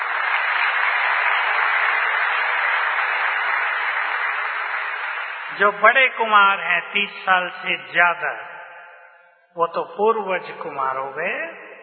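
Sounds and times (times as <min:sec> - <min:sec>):
audience clapping: 0:00.0 - 0:06.7
speech: 0:05.6 - 0:08.5, 0:09.5 - 0:11.6.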